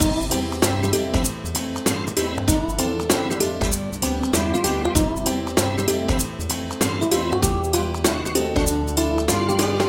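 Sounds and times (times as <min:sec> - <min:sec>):
childish theme music loop: 0:00.0 - 0:09.8.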